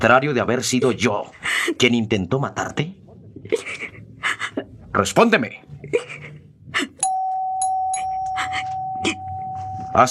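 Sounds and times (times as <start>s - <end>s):
speech: 0.0s - 3.8s, 5.0s - 6.4s
electric doorbell buzzing: 7.0s - 10.0s.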